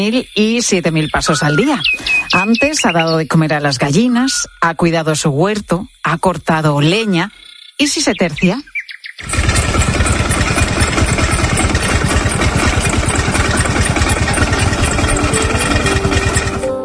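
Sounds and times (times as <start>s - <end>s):
speech: 0.0s - 9.5s
lawnmower engine running: 9.2s - 16.7s.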